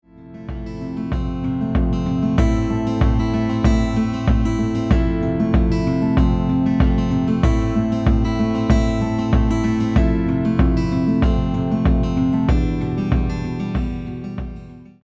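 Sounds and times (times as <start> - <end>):
folk music: 0.5 - 14.1.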